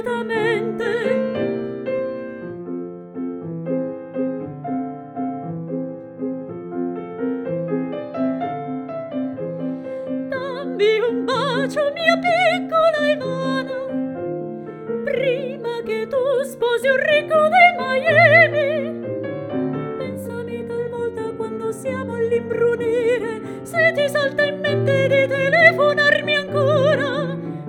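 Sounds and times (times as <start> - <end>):
singing voice: 0.0 - 1.4, 10.2 - 13.9, 15.0 - 18.9, 20.0 - 27.6
piano: 0.0 - 27.6.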